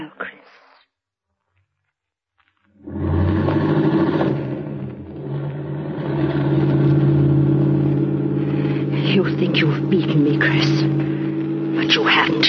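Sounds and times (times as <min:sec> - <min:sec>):
car engine starting and driving off: 0:02.8 - 0:12.4.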